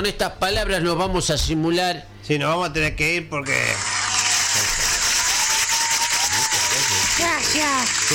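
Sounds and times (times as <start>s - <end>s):
speech: 0.0s - 4.0s, 7.5s - 8.1s
audience applause: 3.8s - 8.1s.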